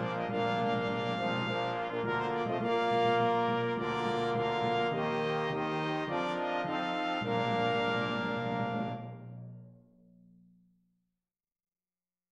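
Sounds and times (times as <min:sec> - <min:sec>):
brass playing a hymn: 0:00.0 - 0:09.4.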